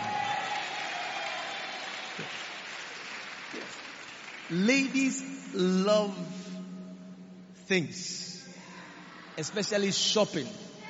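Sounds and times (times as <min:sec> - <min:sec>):
crowd clapping: 0:00.0 - 0:05.2
speech: 0:04.5 - 0:06.4, 0:07.7 - 0:08.3, 0:09.4 - 0:10.7.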